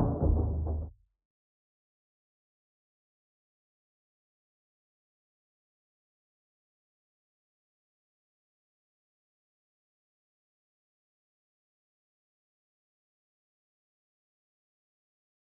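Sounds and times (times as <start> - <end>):
Korg DW 8000 synthesizer: 0.0 - 0.9.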